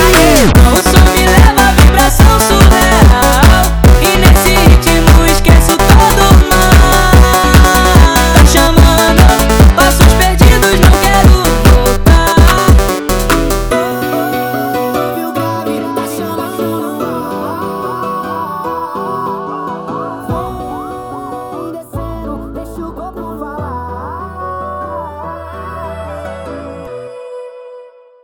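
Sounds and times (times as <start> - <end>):
sped up funk music: 0.0 - 14.5.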